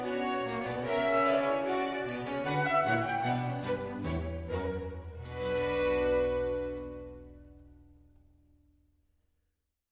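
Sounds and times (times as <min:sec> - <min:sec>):
orchestral suite rondeau: 0:00.0 - 0:07.9.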